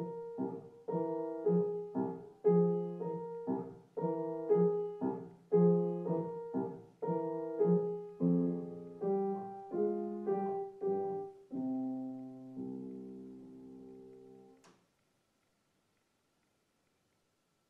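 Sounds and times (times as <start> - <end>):
small German waltz in C minor for piano: 0.0 - 14.6.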